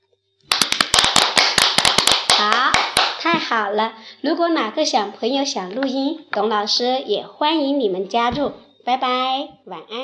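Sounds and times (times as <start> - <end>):
people clapping: 0.5 - 3.4
speech: 3.8 - 10.0.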